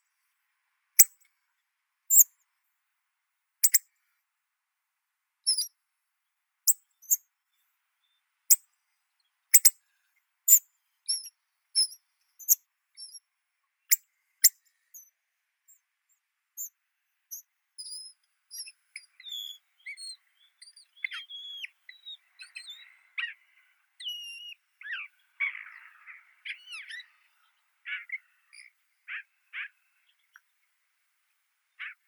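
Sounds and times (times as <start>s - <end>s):
hawfinch Coccothraustes coccothraustes: 9.6s - 9.8s, 17.8s - 23.4s, 24.0s - 29.8s, 31.8s - 32.0s.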